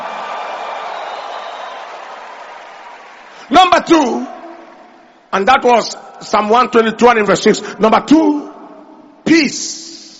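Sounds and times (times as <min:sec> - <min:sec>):
crowd clapping and shouting praise: 0:00.0 - 0:05.3
speech: 0:03.5 - 0:04.4, 0:05.3 - 0:08.4, 0:09.3 - 0:09.8.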